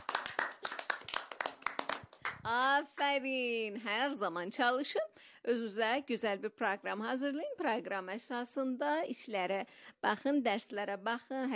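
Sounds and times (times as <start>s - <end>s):
hand clapping: 0.0s - 3.1s
speech: 2.4s - 11.5s.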